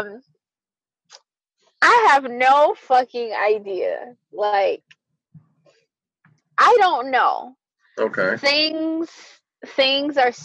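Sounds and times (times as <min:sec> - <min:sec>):
speech: 0:00.0 - 0:00.3, 0:01.8 - 0:05.4, 0:06.6 - 0:10.4
throat clearing: 0:08.0 - 0:08.4.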